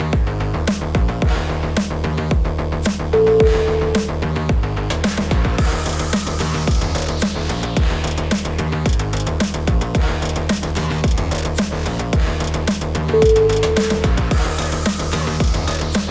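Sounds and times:
playful groove music: 0.2 - 16.0.

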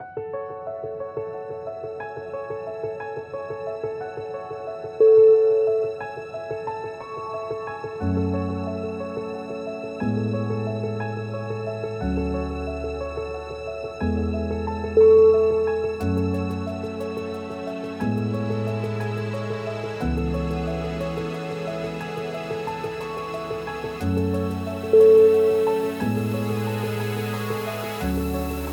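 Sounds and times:
spring piano theme: 0.0 - 28.7.

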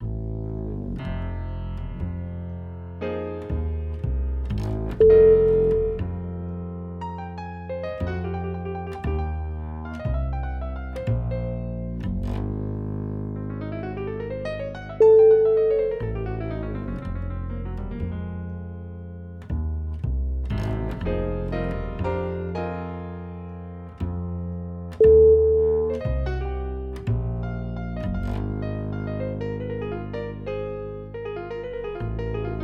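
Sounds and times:
deep blues music: 0.0 - 32.6.

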